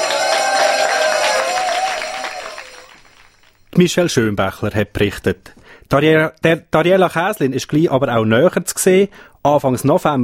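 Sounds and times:
fans applauding: 0.0s - 3.7s
speech: 3.8s - 10.2s.

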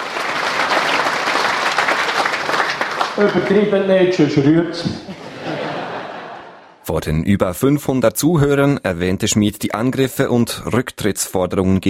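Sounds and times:
audience applause: 0.0s - 3.9s
speech: 3.2s - 5.2s, 6.9s - 11.8s
laughter: 4.8s - 6.8s.

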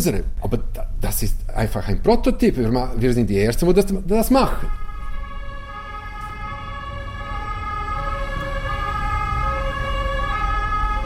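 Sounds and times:
speech: 0.0s - 4.8s
traffic noise: 4.2s - 11.0s
police car siren wailing: 4.6s - 11.0s.

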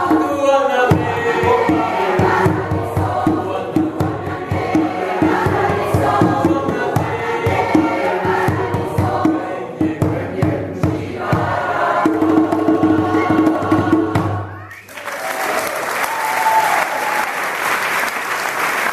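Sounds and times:
music: 0.0s - 14.9s
scattered cheers: 14.7s - 17.6s
audience clapping enthusiastically: 14.7s - 18.9s.

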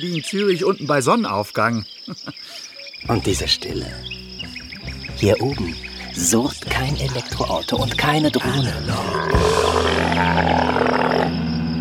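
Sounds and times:
speech: 0.0s - 4.3s, 5.2s - 11.3s
camel vocalizing: 5.6s - 8.0s, 8.7s - 11.5s.

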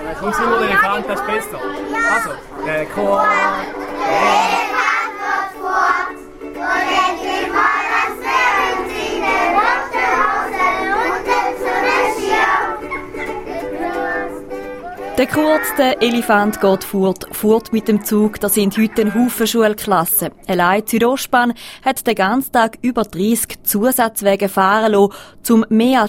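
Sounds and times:
speech: 0.1s - 4.7s, 15.2s - 26.0s
children singing with teacher: 1.3s - 19.5s
teacher playing ukulele: 1.4s - 17.6s.

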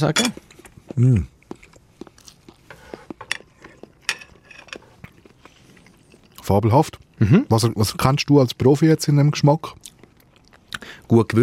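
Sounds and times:
speech: 0.0s - 0.4s, 1.0s - 1.3s, 6.5s - 9.9s, 11.1s - 11.4s
people chewing a small tasting piece of sausage: 0.4s - 7.2s, 9.8s - 11.0s.

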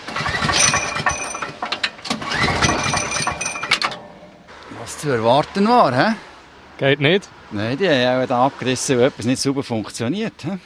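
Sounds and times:
portable ventilation fan engine from a fire department tanker truck: 0.0s - 5.8s
speech: 5.0s - 10.6s.

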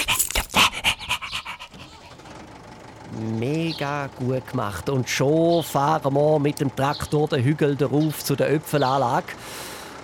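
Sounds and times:
dog panting: 0.0s - 2.4s
speech: 3.2s - 9.5s.

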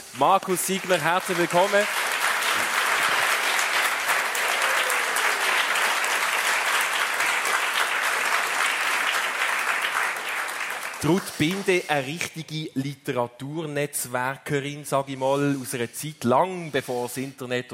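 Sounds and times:
audience applause: 0.0s - 11.9s
speech: 0.1s - 2.0s, 11.0s - 17.7s.

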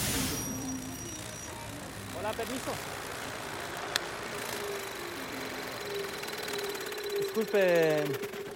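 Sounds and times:
homemade lawnmower with very old engine mowing a meadow in Matanzas, Cuba: 0.0s - 8.5s.

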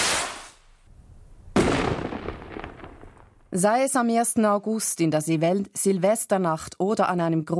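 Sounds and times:
fireworks exploding: 0.0s - 3.5s
speech: 3.5s - 7.5s.

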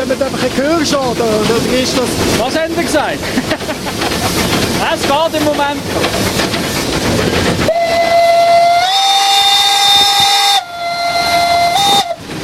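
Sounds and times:
steam hissing: 0.0s - 12.4s
train noise: 0.0s - 12.4s
speech: 0.1s - 8.2s
laughter: 3.0s - 4.6s
steam locomotive whistle: 7.6s - 12.3s.

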